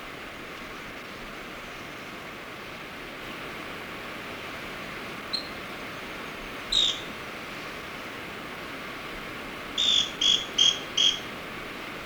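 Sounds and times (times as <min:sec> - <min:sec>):
Scale-crested Pygmy-Tyrant calling in South America: 0:05.3 - 0:05.6, 0:06.6 - 0:07.2, 0:09.7 - 0:11.4.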